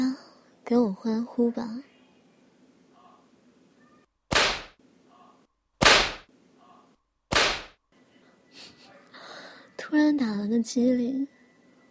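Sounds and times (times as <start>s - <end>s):
speech: 0.7s - 1.9s, 9.9s - 11.4s
whip cracks: 4.3s - 4.8s, 5.8s - 6.3s, 7.3s - 7.8s
faint breathing-like noise: 8.2s - 9.8s.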